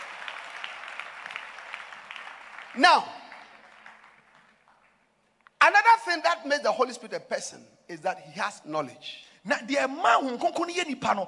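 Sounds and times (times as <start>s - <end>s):
audience clapping hands: 0.0s - 5.6s
speech: 2.8s - 3.2s, 6.2s - 11.2s.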